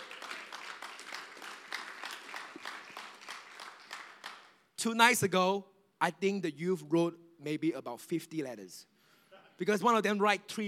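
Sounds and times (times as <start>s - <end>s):
audience clapping: 0.0s - 4.7s
speech: 4.8s - 8.9s, 9.6s - 10.6s.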